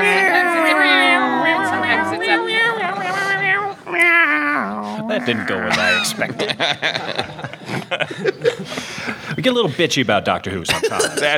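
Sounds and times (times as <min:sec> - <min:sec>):
laughter: 0:00.0 - 0:03.9, 0:05.0 - 0:09.4, 0:10.6 - 0:11.3
people meowing and yowling imitating cats: 0:00.0 - 0:06.4
speech: 0:05.2 - 0:08.8, 0:09.4 - 0:11.3.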